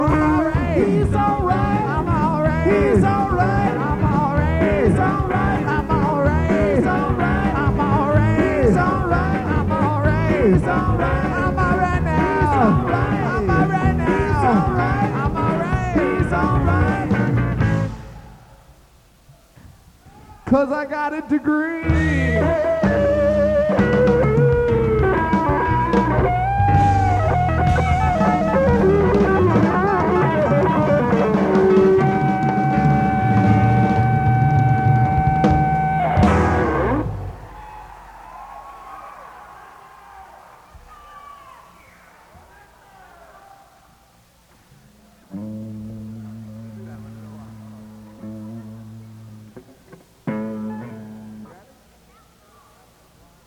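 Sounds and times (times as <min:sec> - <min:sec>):
blues music: 0:00.0 - 0:43.3, 0:44.2 - 0:52.6.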